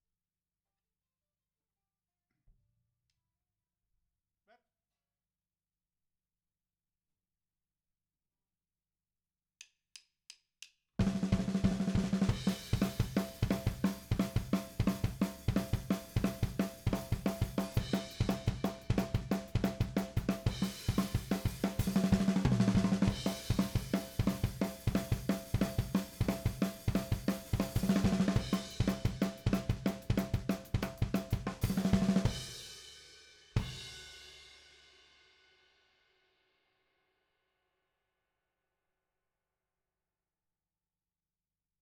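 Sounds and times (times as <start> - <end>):
drums: 11.0 - 35.4.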